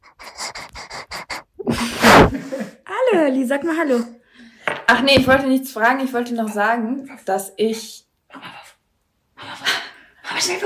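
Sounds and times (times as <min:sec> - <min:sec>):
dog panting: 0:00.0 - 0:02.2
speech: 0:03.1 - 0:04.2, 0:04.9 - 0:08.5, 0:10.4 - 0:10.6.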